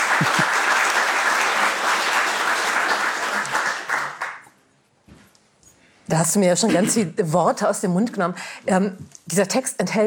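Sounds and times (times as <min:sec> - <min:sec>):
audience applause: 0:00.0 - 0:04.5
speech: 0:06.1 - 0:10.0.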